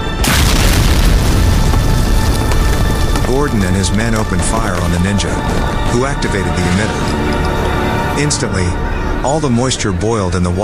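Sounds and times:
explosion blowing a hole through a wall: 0:00.2 - 0:05.8
heavy continuous low rumble and crackling roar: 0:00.2 - 0:09.3
speech: 0:03.4 - 0:07.5, 0:08.2 - 0:10.6.

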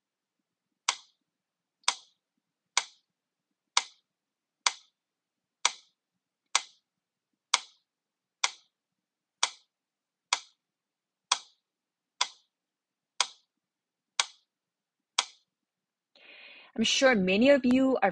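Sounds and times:
metronome ticking: 0:00.9 - 0:01.2, 0:01.8 - 0:02.2, 0:02.8 - 0:03.1, 0:04.7 - 0:04.9, 0:06.6 - 0:06.8, 0:07.5 - 0:07.8, 0:08.4 - 0:08.7, 0:09.4 - 0:09.7, 0:10.3 - 0:10.6, 0:11.3 - 0:11.6, 0:12.2 - 0:12.5, 0:13.2 - 0:13.5, 0:14.2 - 0:14.5, 0:15.2 - 0:15.5
speech: 0:16.8 - 0:18.1.

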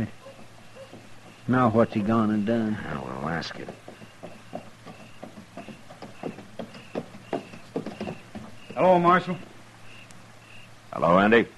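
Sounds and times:
horse hooves clip-clopping as a horse is led with a body across its saddle: 0:00.0 - 0:10.3
speech: 0:01.5 - 0:04.0, 0:08.8 - 0:09.5, 0:11.0 - 0:11.5.

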